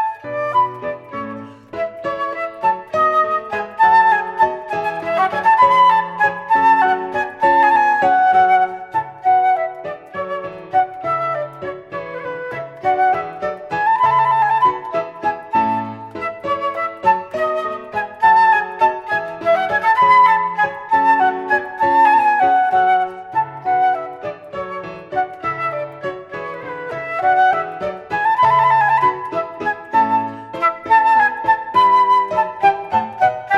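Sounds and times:
full flute playing a passepied: 0:00.0 - 0:33.5.

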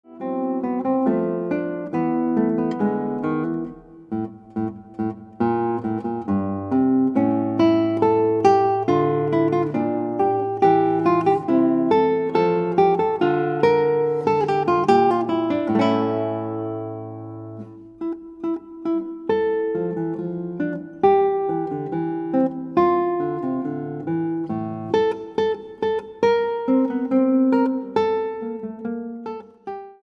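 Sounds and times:
guitar: 0:00.0 - 0:30.0.

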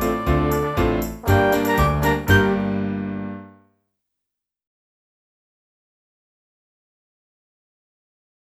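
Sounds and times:
clarinet: 0:00.0 - 0:03.5.

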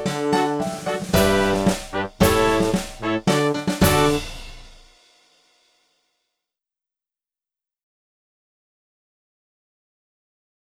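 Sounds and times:
flute: 0:00.1 - 0:04.2.

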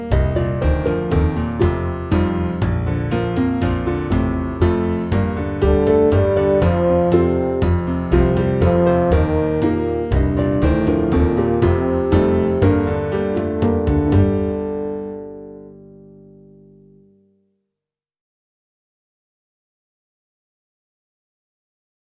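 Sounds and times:
clarinet: 0:00.1 - 0:16.6.

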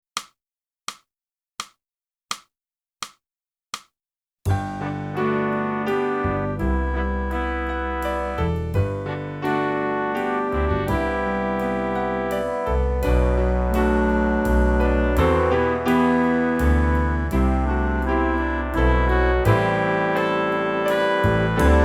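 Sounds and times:
flute: 0:05.2 - 0:21.8.

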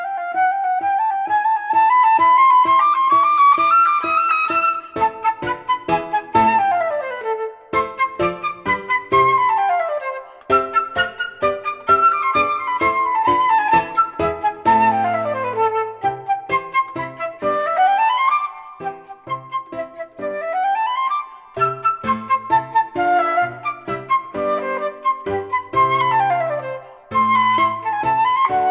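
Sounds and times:
flute playing a minuet: 0:00.0 - 0:28.7.

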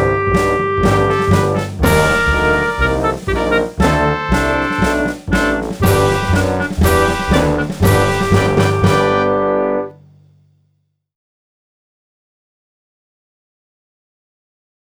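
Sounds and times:
clarinet: 0:00.0 - 0:10.0.

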